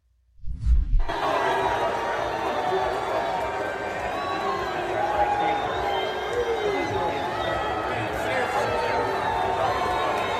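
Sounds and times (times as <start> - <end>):
low thump: 0.4 - 1.1
football stadium crowd booing and cheering: 1.0 - 10.3.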